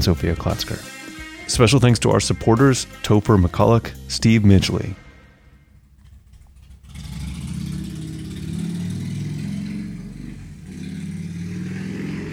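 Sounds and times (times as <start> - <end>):
speech: 0.0 - 5.0
loud motorcycle engine passing: 5.8 - 12.3.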